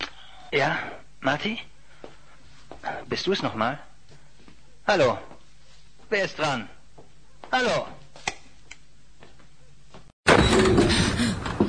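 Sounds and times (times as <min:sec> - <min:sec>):
speech: 0:00.5 - 0:01.7, 0:02.8 - 0:03.9, 0:04.9 - 0:05.3, 0:06.1 - 0:06.8, 0:07.5 - 0:08.0
gate slamming shut on its own: 0:10.3 - 0:11.5.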